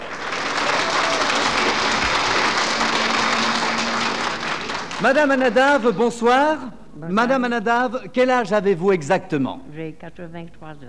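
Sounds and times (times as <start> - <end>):
audience applause: 0.0 - 6.2
speech: 5.0 - 10.8.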